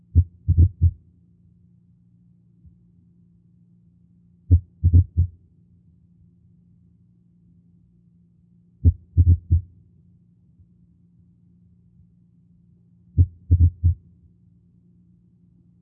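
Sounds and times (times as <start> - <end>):
atrial fibrillation heartbeat: 0.0 - 1.0, 4.5 - 5.3, 8.8 - 9.7, 13.2 - 14.0.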